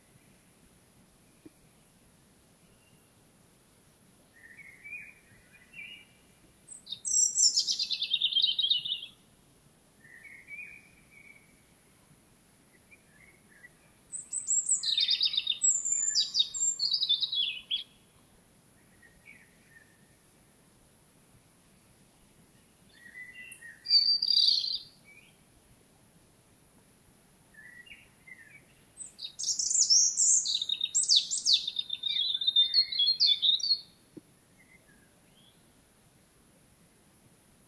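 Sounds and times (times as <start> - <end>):
European robin singing: 4.3 - 9.2, 10.0 - 11.6, 12.7 - 18.0, 22.5 - 25.4, 27.5 - 34.0.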